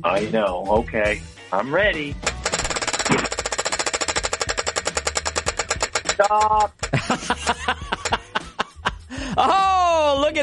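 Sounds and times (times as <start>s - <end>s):
speech: 0.0s - 2.3s, 6.2s - 8.0s, 9.4s - 10.4s
prize wheel spinning in a game: 2.2s - 8.4s
laughter: 6.9s - 9.8s.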